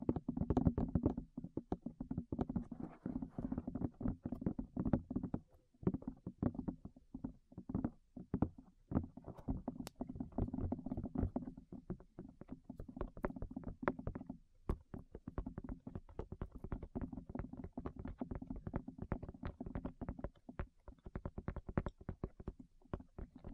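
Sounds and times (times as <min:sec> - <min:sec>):
rapid tapping on the ears: 0:00.0 - 0:23.5.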